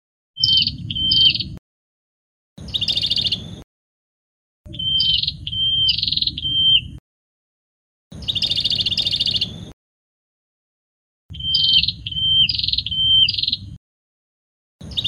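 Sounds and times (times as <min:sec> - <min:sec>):
prinia song with level whistles and harsh buzzy trills: 0:00.4 - 0:01.6, 0:02.6 - 0:03.6, 0:04.7 - 0:07.0, 0:08.1 - 0:09.7, 0:11.3 - 0:13.8, 0:14.8 - 0:15.0.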